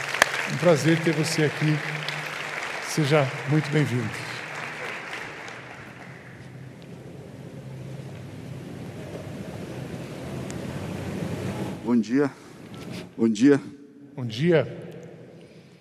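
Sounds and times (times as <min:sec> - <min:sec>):
audience applause: 0:00.0 - 0:11.8
speech: 0:00.5 - 0:02.0, 0:02.9 - 0:04.3, 0:12.0 - 0:12.4, 0:13.2 - 0:14.9.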